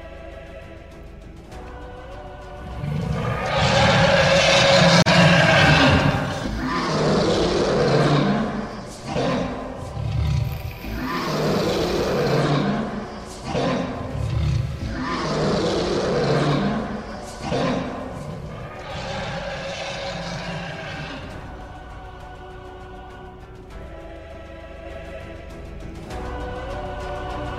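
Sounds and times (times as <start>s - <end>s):
monstrous roaring of many beasts: 2.6s - 21.6s.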